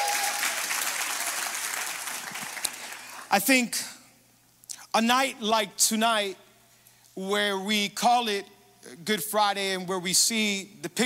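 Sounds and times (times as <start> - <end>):
congregation at a Good Friday service clapping: 0.0 - 3.3
speech: 3.3 - 3.9, 5.0 - 6.4, 7.2 - 11.0.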